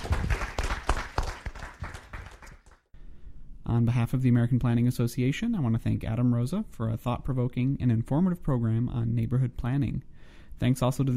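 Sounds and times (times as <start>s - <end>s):
round of audience applause: 0.0s - 2.8s
speech: 3.7s - 11.1s.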